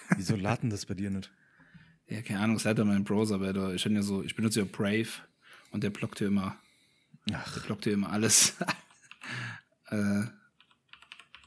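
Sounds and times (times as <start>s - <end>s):
speech: 0.2s - 1.5s, 2.1s - 6.6s, 7.2s - 8.8s, 9.9s - 10.4s
typing on a computer keyboard: 8.8s - 9.3s, 10.6s - 11.4s.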